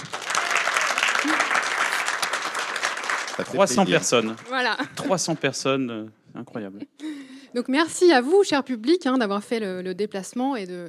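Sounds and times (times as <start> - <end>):
live audience applause: 0.0 - 5.8
laughter: 3.4 - 5.8
speech: 3.4 - 10.8.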